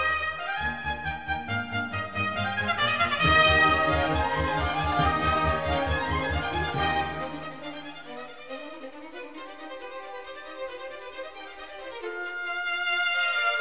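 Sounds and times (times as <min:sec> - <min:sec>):
trumpet concerto in E flat: 0:00.0 - 0:08.0, 0:12.2 - 0:13.6.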